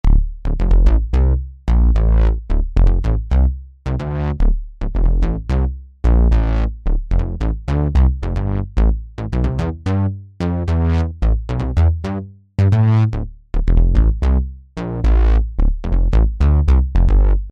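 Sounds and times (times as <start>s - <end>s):
bassline: 0.0s - 17.5s.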